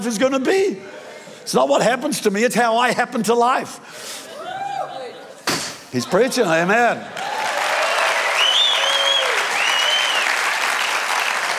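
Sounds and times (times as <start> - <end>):
speech: 0.0 - 4.2, 5.9 - 7.2
audience applause: 7.1 - 11.5.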